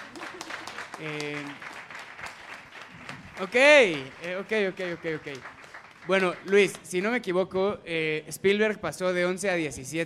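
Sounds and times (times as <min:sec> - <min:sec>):
audience clapping: 0:00.0 - 0:07.1
speech: 0:01.0 - 0:01.7, 0:03.4 - 0:10.0.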